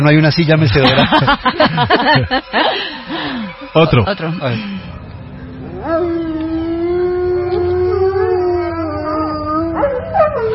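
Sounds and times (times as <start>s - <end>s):
speech: 0.0s - 5.0s, 5.8s - 6.3s
laughter: 0.7s - 4.0s
dogs howling: 5.5s - 10.5s
dog yelping: 7.5s - 10.5s.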